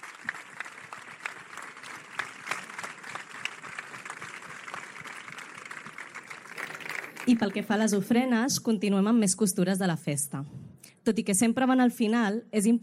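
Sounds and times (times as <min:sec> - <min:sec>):
audience applause: 0:00.0 - 0:08.0
speech: 0:07.3 - 0:12.8.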